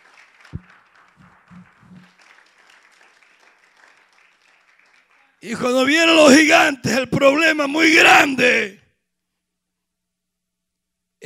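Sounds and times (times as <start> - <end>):
audience clapping: 0.0 - 6.0
low thumps: 0.6 - 2.0
speech: 5.4 - 8.8.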